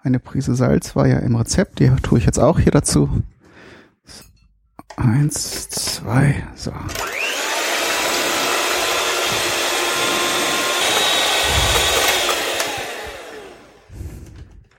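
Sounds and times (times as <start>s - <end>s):
speech: 0.0s - 3.3s, 4.0s - 4.3s, 5.0s - 7.1s
electric hand mixer whipping egg whites: 6.8s - 14.4s.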